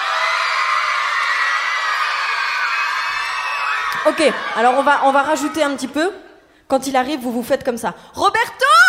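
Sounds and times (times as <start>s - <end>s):
crowd cheering wildly: 0.0s - 5.8s
speech: 4.0s - 8.8s.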